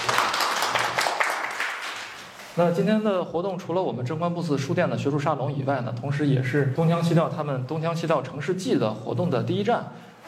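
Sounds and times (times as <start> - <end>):
audience clapping at an academic salon in a bookstore: 0.0 - 2.5
speech: 2.6 - 10.1.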